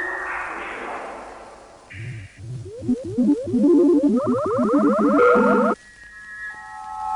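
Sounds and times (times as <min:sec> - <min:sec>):
musique concrète tape-montage recording: 0:01.9 - 0:05.8.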